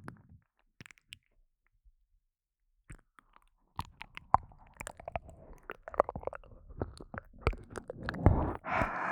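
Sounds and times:
ear licking: 0.8 - 1.3, 2.9 - 8.9.

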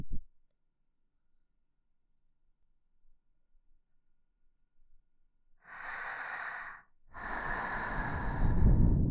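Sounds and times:
person blowing into left ear: 5.7 - 9.0.

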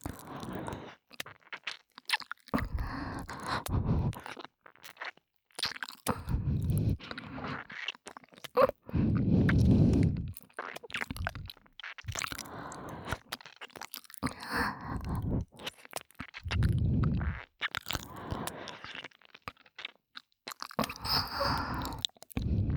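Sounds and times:
ear licking: 0.0 - 19.9, 20.5 - 22.7
heavy breathing: 2.6 - 4.3, 6.1 - 7.6, 8.6 - 10.4, 14.2 - 15.6, 16.4 - 17.4, 20.9 - 22.7.

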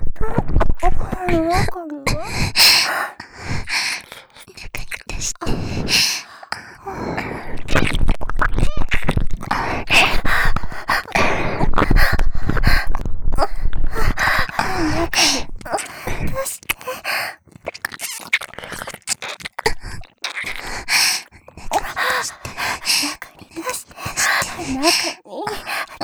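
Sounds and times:
ear licking: 0.2 - 26.0
person moaning: 14.0 - 15.9, 21.8 - 26.0.

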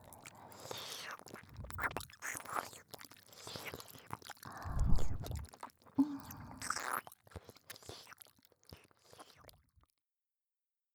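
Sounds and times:
ear licking in both ears: 1.2 - 9.6.

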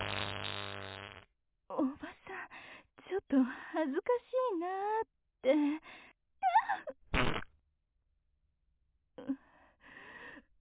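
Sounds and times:
fart: 0.0 - 1.3, 7.1 - 7.5
speech: 1.8 - 2.2, 3.2 - 6.0.

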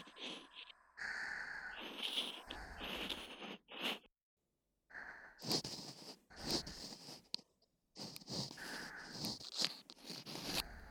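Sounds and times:
ear cleaning ASMR: 1.4 - 4.1, 5.3 - 10.8.

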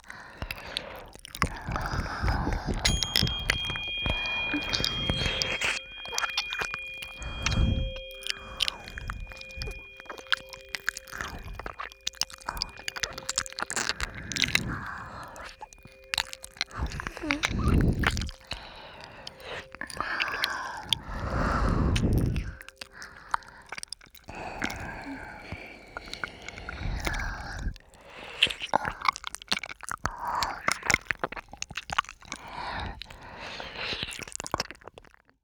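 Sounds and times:
ear licking: 0.0 - 35.3
tuning fork ringing: 2.8 - 23.0.

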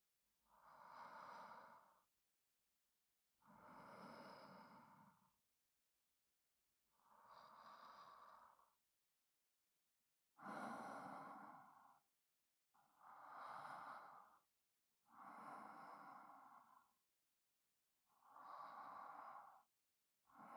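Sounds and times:
sleeping breath for sleep aid: 0.6 - 2.0, 3.4 - 5.3, 7.0 - 8.8, 10.4 - 12.0, 12.9 - 14.5, 15.1 - 17.0, 18.2 - 19.7.

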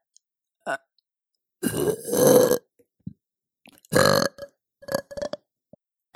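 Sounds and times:
loud burps: 1.7 - 2.7, 3.7 - 5.5.

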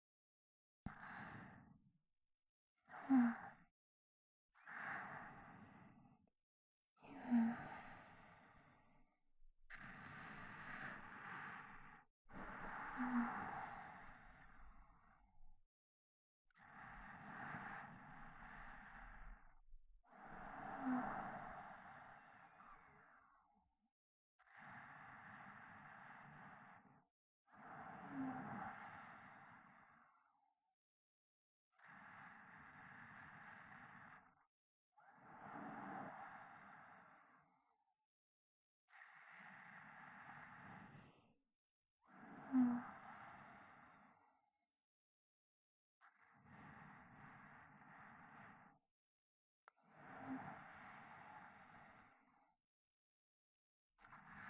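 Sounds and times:
sleep breathing recorded with binaural microphone: 0.9 - 1.7, 2.8 - 3.7, 4.6 - 6.1, 7.0 - 15.6, 16.5 - 23.6, 24.4 - 26.9, 27.6 - 30.4, 31.8 - 34.4, 35.2 - 37.8, 38.9 - 41.4, 42.1 - 44.4, 46.0 - 48.8, 49.8 - 52.5, 54.1 - 54.4.

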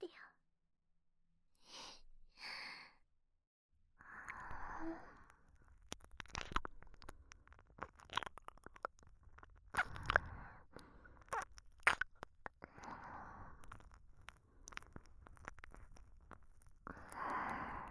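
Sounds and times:
ASMR ear licking sounds: 4.3 - 17.8.

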